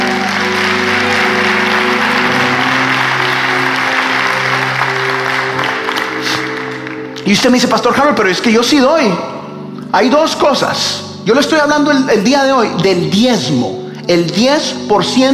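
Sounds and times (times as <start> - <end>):
crowd applauding: 0.0 - 8.2
sustained low musical tones: 0.0 - 15.3
speech: 7.3 - 15.3.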